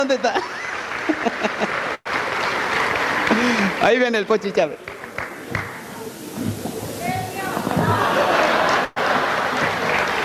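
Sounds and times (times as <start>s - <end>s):
speech: 0.0s - 2.0s, 3.4s - 4.9s
laughter: 0.0s - 10.2s
steady audience applause: 0.0s - 10.2s.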